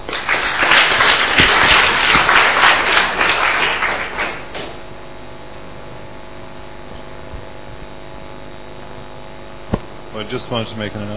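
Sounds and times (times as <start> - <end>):
crowd applauding after a panel: 0.0 - 4.8
speech: 10.2 - 11.1.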